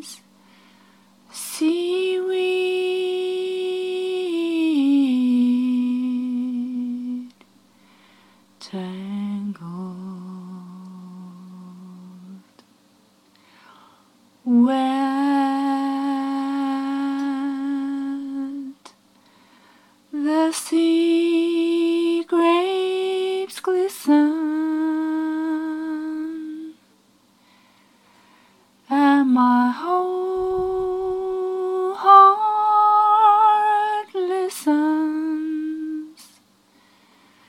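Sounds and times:
woman singing: 0.0s - 0.3s, 1.3s - 7.4s, 8.6s - 12.6s, 14.4s - 19.0s, 20.1s - 26.8s, 28.9s - 36.4s.

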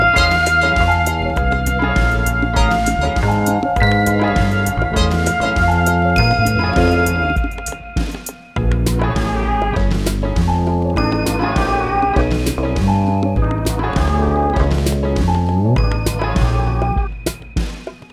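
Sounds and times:
whale groove music: 0.0s - 17.9s.

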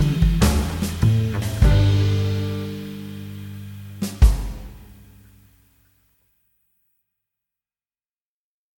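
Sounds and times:
blues music: 0.0s - 5.8s.

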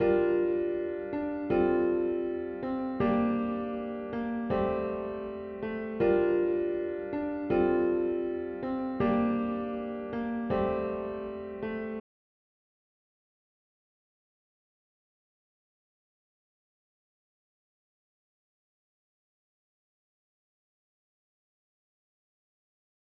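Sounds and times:
piano: 0.0s - 12.0s.

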